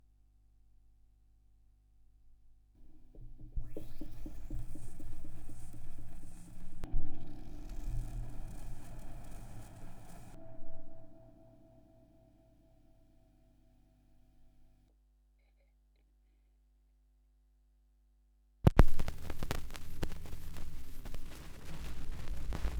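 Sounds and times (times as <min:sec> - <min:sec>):
vinyl record noise: 0:03.6 - 0:10.4, 0:18.7 - 0:22.7.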